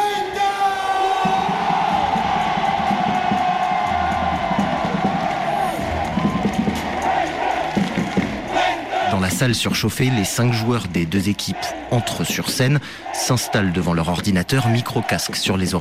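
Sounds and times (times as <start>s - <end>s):
scattered yells and whoops: 0.0s - 7.6s
crowd cheering at an esports match in a packed hall: 0.0s - 15.7s
speech: 9.4s - 15.7s.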